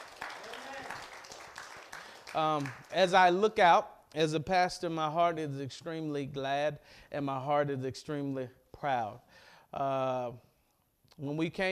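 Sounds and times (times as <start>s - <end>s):
audience hand clapping: 0.0s - 3.1s
speech: 2.3s - 10.5s, 11.2s - 11.7s.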